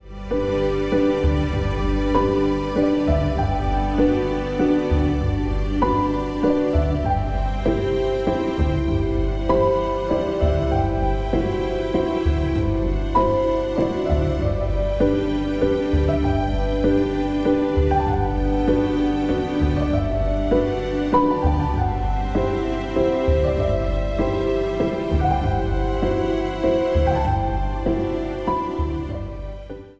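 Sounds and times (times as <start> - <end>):
orchestral music: 0.0 - 29.9.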